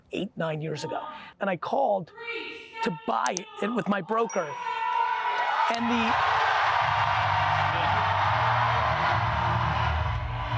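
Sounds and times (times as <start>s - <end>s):
speech: 0.1s - 4.8s, 5.7s - 7.0s
audience cheering: 4.8s - 10.5s.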